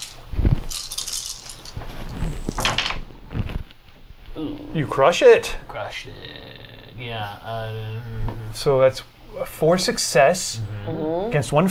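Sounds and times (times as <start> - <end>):
handful of dice rattling across a surface: 0.0 - 2.8
speech: 4.4 - 6.4, 7.0 - 11.6.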